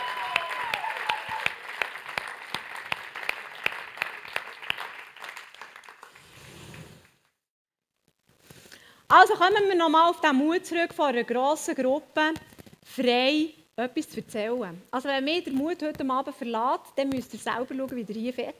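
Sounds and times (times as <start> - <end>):
audience clapping: 0.0 - 7.3
speech: 9.2 - 18.5.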